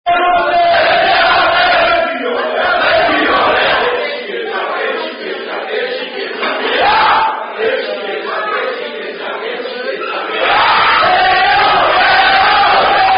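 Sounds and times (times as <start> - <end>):
French rugby chant: 0.1 - 13.1.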